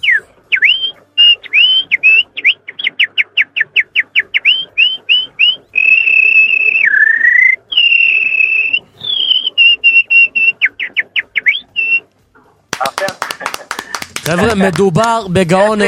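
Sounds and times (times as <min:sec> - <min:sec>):
person whistling an imitation of birdsong: 0:00.0 - 0:12.1
speech: 0:14.3 - 0:15.8.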